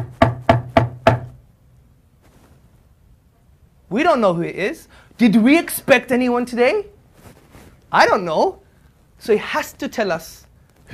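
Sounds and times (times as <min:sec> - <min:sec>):
firm knocking on a door: 0:00.0 - 0:01.4
speech: 0:03.9 - 0:06.9, 0:07.9 - 0:08.6, 0:09.2 - 0:10.9.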